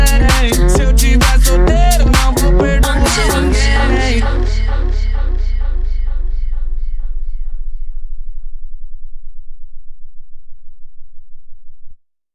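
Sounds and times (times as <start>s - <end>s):
electro funk music: 0.0s - 6.8s.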